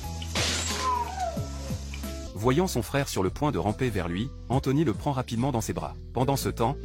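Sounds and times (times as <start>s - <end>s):
jar knocked off a shelf falling to the floor and breaking: 0.2s - 1.1s
speech: 2.4s - 6.8s.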